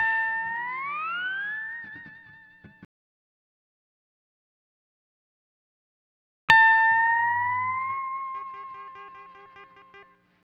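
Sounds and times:
dry steel guitar in D: 0:00.0 - 0:02.8, 0:06.7 - 0:10.4.

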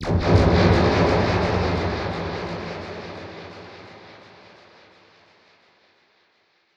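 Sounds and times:
dub percussion hit: 0:00.0 - 0:04.6.

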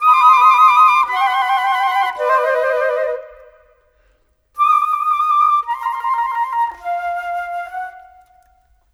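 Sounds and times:
cinematic flutes: 0:00.0 - 0:04.0, 0:04.6 - 0:08.7.

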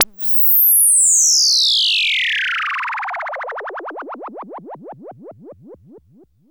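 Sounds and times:
falling synth effect: 0:00.0 - 0:06.3.

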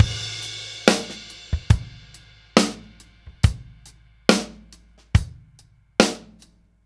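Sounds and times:
70s ballad drum loop: 0:00.0 - 0:06.5.

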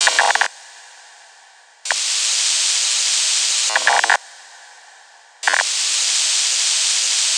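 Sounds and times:
cosmic radio noise: 0:00.0 - 0:00.5, 0:01.9 - 0:04.2, 0:05.4 - 0:07.3.

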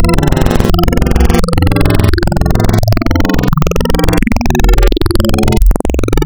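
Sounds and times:
spectral wavetable synth: 0:00.0 - 0:06.2.

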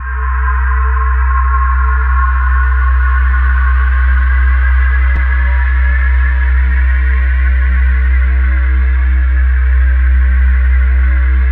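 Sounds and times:
cyclone drone: 0:00.0 - 0:11.4.

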